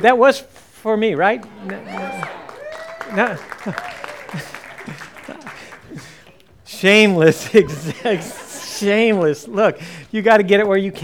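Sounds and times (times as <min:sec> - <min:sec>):
speech: 0:00.0 - 0:02.4, 0:03.1 - 0:05.0, 0:06.8 - 0:11.0
audience clapping and applauding: 0:00.0 - 0:08.7
scattered voices calling out: 0:00.0 - 0:11.0
laughter: 0:01.1 - 0:11.0.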